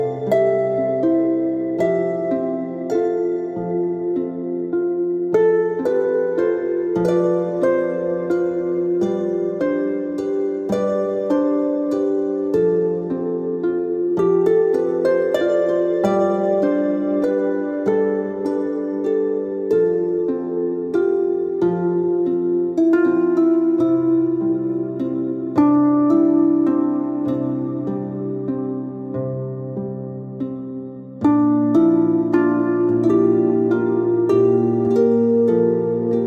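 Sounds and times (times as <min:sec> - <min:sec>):
harp: 0:00.0 - 0:36.2.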